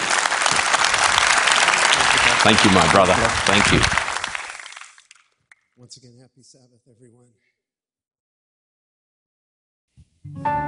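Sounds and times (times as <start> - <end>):
audience applauding to welcome a pastor who is about to sing: 0.0 - 5.7
speech: 2.4 - 4.0, 5.9 - 7.5, 10.3 - 10.6.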